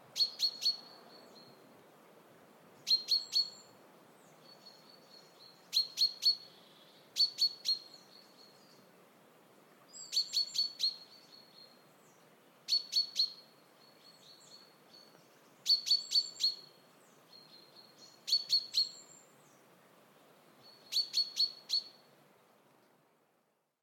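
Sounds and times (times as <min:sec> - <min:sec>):
chaffinch pipping: 0:00.2 - 0:01.6, 0:02.8 - 0:03.7, 0:04.4 - 0:06.5, 0:07.2 - 0:08.8, 0:09.9 - 0:11.8, 0:12.7 - 0:13.5, 0:14.2 - 0:16.8, 0:17.4 - 0:19.2, 0:20.6 - 0:22.0.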